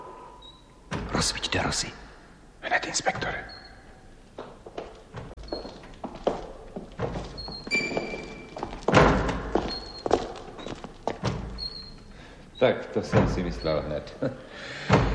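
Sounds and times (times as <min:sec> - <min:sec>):
door banging open and shut in wind: 0:00.9 - 0:01.3, 0:03.1 - 0:12.1, 0:13.0 - 0:14.0, 0:14.8 - 0:15.1
speech: 0:01.2 - 0:02.0, 0:02.8 - 0:03.6, 0:12.6 - 0:15.0
door creaking: 0:03.0 - 0:14.2.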